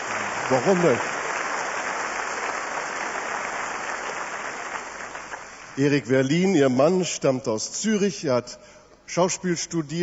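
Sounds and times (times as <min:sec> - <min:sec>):
audience clapping: 0:00.0 - 0:06.1
speech: 0:00.5 - 0:01.1, 0:05.8 - 0:10.0.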